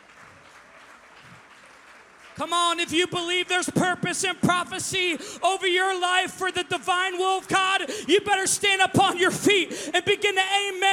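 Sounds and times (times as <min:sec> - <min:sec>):
audience clapping: 0:00.0 - 0:04.0
speech: 0:02.4 - 0:10.9.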